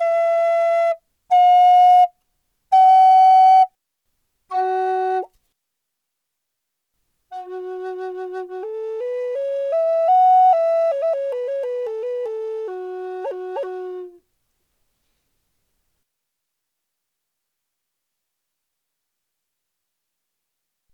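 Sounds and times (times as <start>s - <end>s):
Ukrainian flute: 0.0s - 3.8s, 4.5s - 5.3s, 7.3s - 14.2s.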